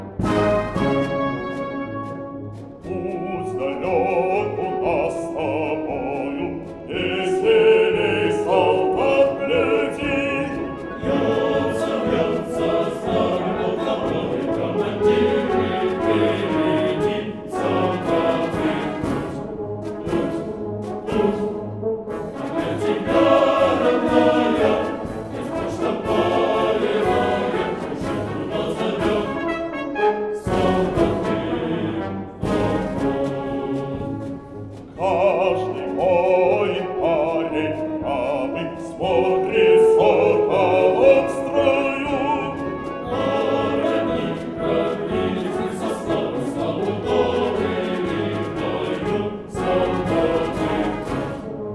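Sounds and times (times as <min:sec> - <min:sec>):
Orthodox soldiers' choir singing: 0:00.2 - 0:02.2, 0:02.8 - 0:51.7.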